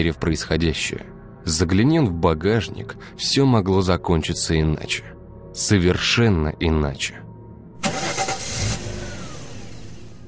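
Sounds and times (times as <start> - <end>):
speech: 0.0 - 8.0
car engine starting after hesitation: 7.8 - 10.2.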